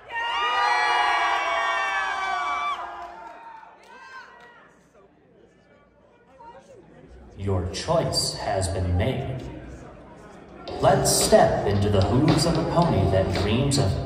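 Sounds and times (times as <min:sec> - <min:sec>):
audience cheering: 0:00.0 - 0:04.7
speech: 0:07.4 - 0:09.6, 0:10.8 - 0:14.0.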